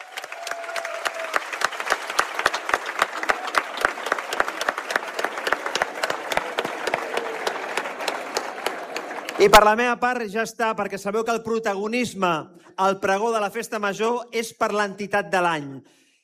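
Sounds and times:
loud applause: 0.0 - 9.8
speech: 9.4 - 16.0.

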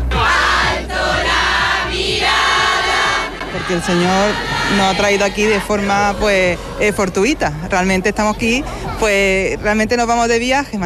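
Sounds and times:
crowd of faithful chanting: 0.1 - 7.2
speech: 3.7 - 10.8.

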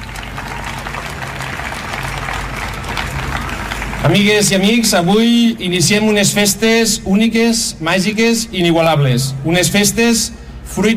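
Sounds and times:
audience applause: 0.0 - 4.9
speech: 4.0 - 10.9.

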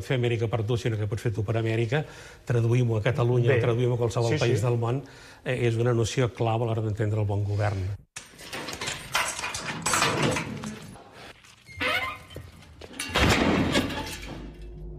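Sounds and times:
speech: 0.0 - 8.6
doors banging shut: 8.4 - 10.9, 12.9 - 14.6.

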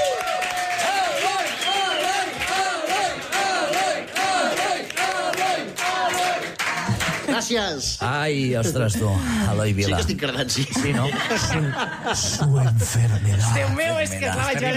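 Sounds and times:
audience applause: 0.0 - 7.4
speech: 7.5 - 14.7
laughter: 8.4 - 14.7.

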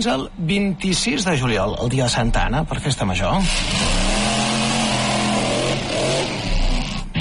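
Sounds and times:
speech: 0.0 - 4.1
stunt car engine revving: 3.4 - 7.2.

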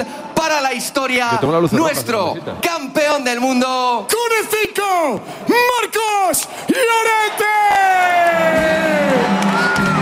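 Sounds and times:
speech: 0.0 - 9.9
stadium crowd cheering at an Atlético de Madrid celebration: 5.0 - 10.0.

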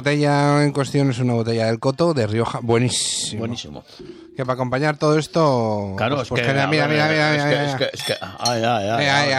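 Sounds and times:
speech: 0.0 - 9.3
real wine glasses clinking in a toast in a studio: 7.6 - 9.3.

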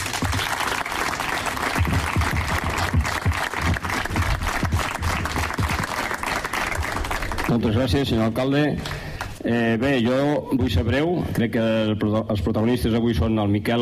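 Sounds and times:
audience applause: 0.0 - 8.0
speech: 7.5 - 13.7.

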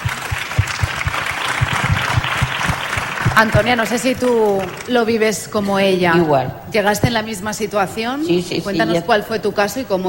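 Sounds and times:
audience applause: 0.0 - 5.2
speech: 3.4 - 10.0.

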